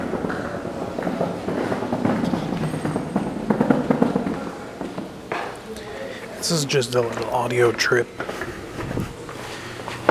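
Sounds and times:
soft footsteps walking to the car: 0:00.0 - 0:10.0
speech: 0:06.5 - 0:08.4.

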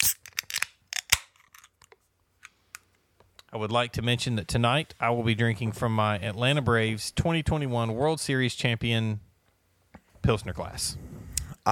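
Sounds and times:
beer cans cracked open: 0:00.0 - 0:01.9
speech: 0:03.5 - 0:09.3, 0:10.3 - 0:11.1.

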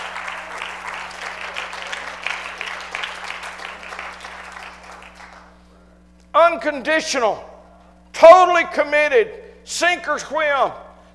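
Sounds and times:
audience clapping: 0:00.0 - 0:05.6
low constant hum: 0:00.0 - 0:11.1
speech: 0:06.5 - 0:07.5, 0:08.2 - 0:10.8.

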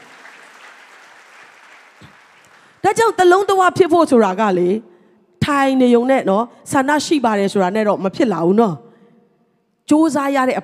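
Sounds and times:
congregation clapping hands to praise God during a church sermon: 0:00.0 - 0:02.8
speech: 0:02.9 - 0:04.9, 0:05.5 - 0:08.8, 0:09.9 - 0:10.6.

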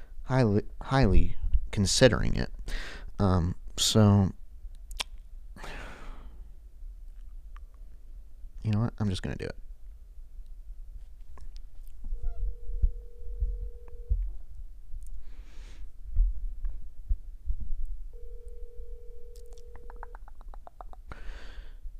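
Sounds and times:
speech: 0:00.3 - 0:04.4, 0:08.7 - 0:09.6
phone call ringing tone: 0:12.2 - 0:14.2, 0:18.1 - 0:20.2.

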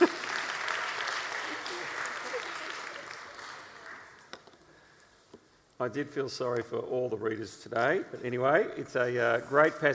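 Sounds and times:
applause for a reader: 0:00.0 - 0:04.4
speech: 0:05.8 - 0:09.9.

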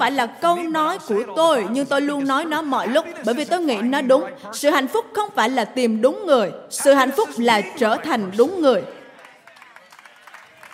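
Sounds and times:
speech: 0:00.0 - 0:09.0
weak audience clapping: 0:08.9 - 0:10.7.

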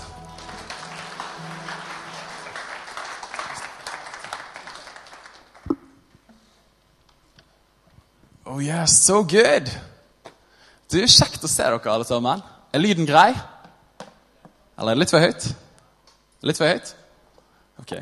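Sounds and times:
audience applause: 0:00.0 - 0:05.7
speech: 0:08.6 - 0:09.9, 0:10.9 - 0:13.5, 0:14.8 - 0:15.6, 0:16.4 - 0:17.0, 0:17.9 - 0:18.0.

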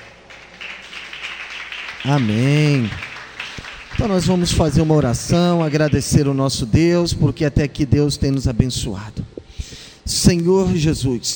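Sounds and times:
crowd clapping their hands in praise: 0:00.0 - 0:06.6
speech: 0:02.0 - 0:03.0, 0:04.0 - 0:09.3, 0:10.2 - 0:11.3.

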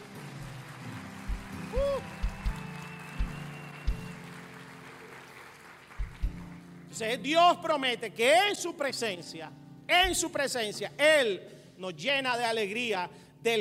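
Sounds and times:
audience applause: 0:00.0 - 0:06.8
speech: 0:07.0 - 0:13.5.

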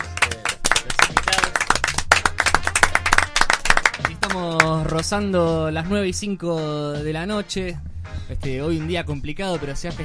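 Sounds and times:
applause and clapping: 0:00.0 - 0:05.2
speech: 0:04.4 - 0:10.0.

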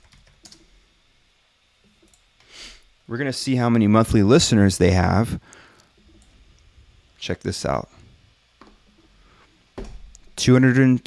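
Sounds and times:
typing on a computer keyboard: 0:00.0 - 0:00.6
speech: 0:03.1 - 0:05.6, 0:07.2 - 0:08.0, 0:10.4 - 0:11.0.

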